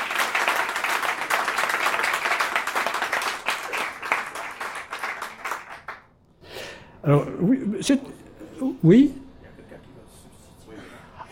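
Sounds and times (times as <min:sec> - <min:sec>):
audience applause: 0:00.0 - 0:06.1
speech: 0:07.0 - 0:09.2.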